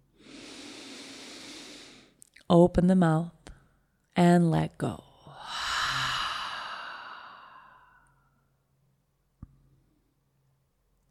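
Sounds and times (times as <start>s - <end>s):
huge breath in during a guided breathing exercise: 0.1s - 2.2s, 5.3s - 8.4s
speech: 2.5s - 3.4s, 4.2s - 5.1s.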